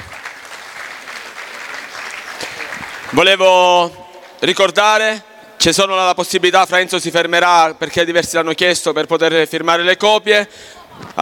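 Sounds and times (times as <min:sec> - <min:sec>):
audience applause: 0:00.0 - 0:03.4
speech: 0:03.1 - 0:11.2.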